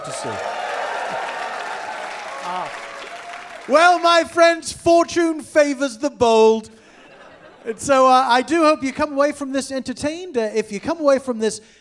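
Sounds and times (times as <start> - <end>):
audience applause: 0.0 - 4.2
speech: 0.2 - 0.5, 2.5 - 2.8, 3.7 - 6.8, 7.6 - 11.7
laughter: 6.8 - 8.6.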